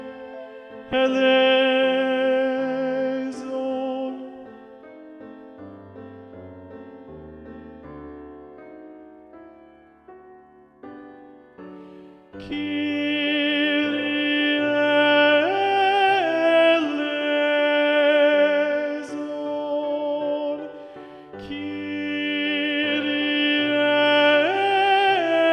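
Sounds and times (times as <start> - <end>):
tenor singing: 0.0 - 5.4, 12.3 - 25.5.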